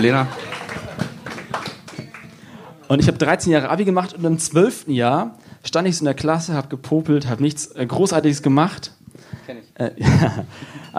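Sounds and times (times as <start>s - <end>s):
speech: 0.0s - 0.4s, 2.9s - 10.9s
laughter: 0.0s - 2.8s, 10.0s - 10.5s
audience applause: 0.0s - 2.9s.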